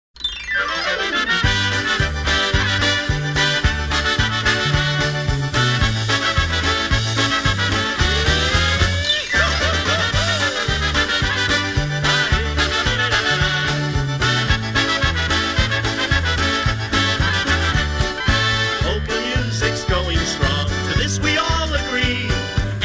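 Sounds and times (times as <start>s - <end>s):
polka music: 0.6s - 22.8s
laughter: 8.1s - 13.8s.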